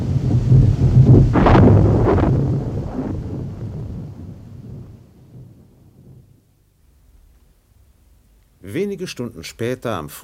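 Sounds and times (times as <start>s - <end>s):
loud deep rumble of thunder with sharp cracks: 0.0s - 8.0s
speech: 8.8s - 10.2s.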